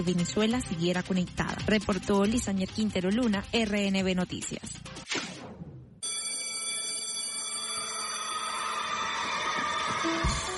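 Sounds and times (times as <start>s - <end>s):
speech: 0.0s - 5.2s
school bell ringing: 6.0s - 10.4s.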